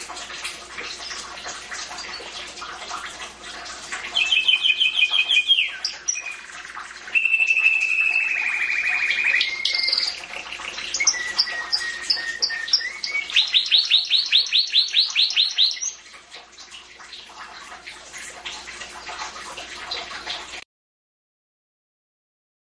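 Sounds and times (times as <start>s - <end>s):
canary singing trills: 4.1s - 16.0s.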